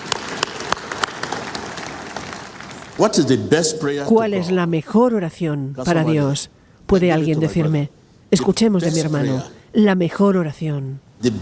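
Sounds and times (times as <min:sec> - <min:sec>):
audience applause: 0:00.0 - 0:03.1
speech: 0:03.0 - 0:11.4.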